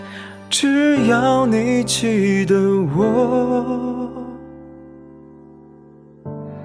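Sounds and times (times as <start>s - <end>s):
pop song vocals: 0.0s - 4.6s.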